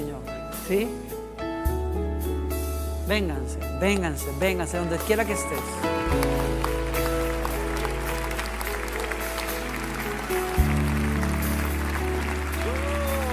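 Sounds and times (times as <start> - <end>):
sustained keyboard chords: 0.0 - 13.3
speech: 0.7 - 1.1, 3.1 - 6.3
audience applause: 6.1 - 13.3.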